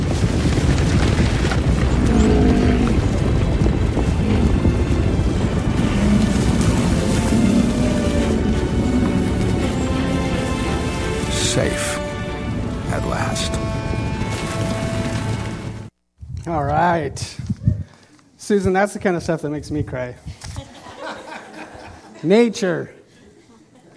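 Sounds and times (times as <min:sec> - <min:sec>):
herd hooves thundering: 0:00.0 - 0:15.9
speech: 0:18.5 - 0:20.4, 0:22.2 - 0:23.0
laughter: 0:20.5 - 0:23.9.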